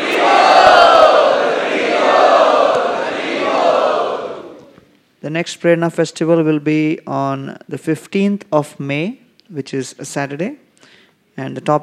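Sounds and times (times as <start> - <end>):
audience loudly chanting in welcome at an evening Prerna festival gathering: 0.0 - 4.7
speech: 5.3 - 10.6, 11.4 - 11.8.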